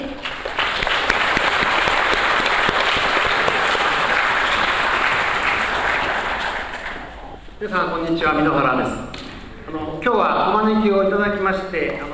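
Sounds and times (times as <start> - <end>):
audience applause: 0.0 - 7.4
speech: 7.7 - 12.1.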